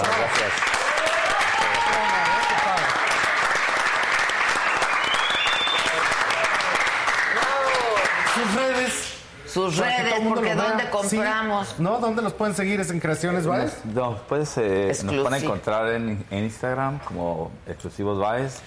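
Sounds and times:
speech: 0.0 - 0.8, 9.6 - 18.6
audience applause: 0.0 - 8.9.

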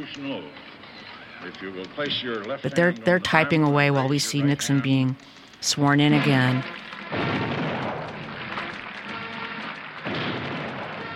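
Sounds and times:
speech: 0.0 - 0.8, 1.4 - 7.5
21-gun salute cannon fire: 7.0 - 11.1.

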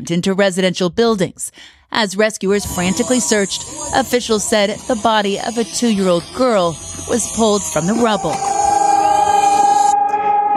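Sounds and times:
speech: 0.0 - 8.6
air raid sirens in Kharkiv: 2.6 - 10.5.

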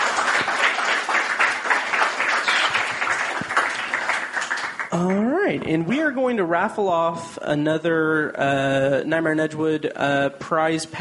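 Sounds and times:
audience applause: 0.0 - 5.4
speech: 4.9 - 10.9.

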